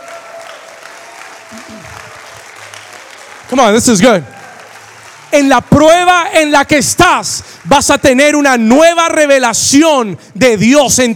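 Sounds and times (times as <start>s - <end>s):
audience applause: 0.0s - 6.1s
speech: 1.5s - 2.2s, 3.5s - 4.4s, 5.3s - 11.1s.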